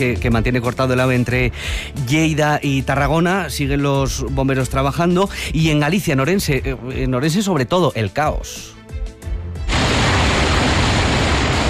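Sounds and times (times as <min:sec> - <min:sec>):
speech: 0:00.0 - 0:08.8
storm with heavy rain: 0:09.7 - 0:11.6.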